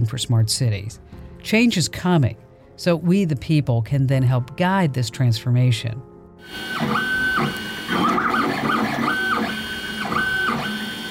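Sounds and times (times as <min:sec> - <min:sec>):
speech: 0:00.0 - 0:08.3
3D printer stepper motors whining over mechanical whir: 0:06.4 - 0:11.0.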